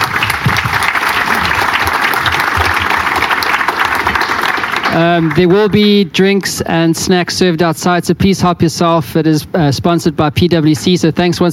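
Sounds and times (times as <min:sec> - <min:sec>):
audience applause for panelists: 0:00.0 - 0:05.8
speech: 0:05.0 - 0:11.5.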